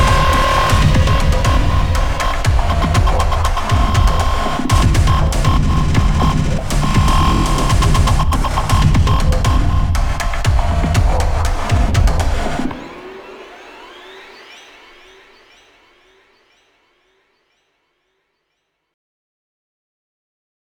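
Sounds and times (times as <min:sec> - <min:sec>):
suspenseful night attack game music: 0:00.0 - 0:15.2.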